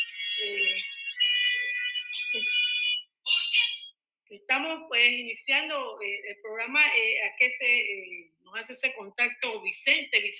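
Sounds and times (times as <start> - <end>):
telephone ringing with an incoming call to the radio show: 0.0 - 4.0
speech: 4.4 - 10.3.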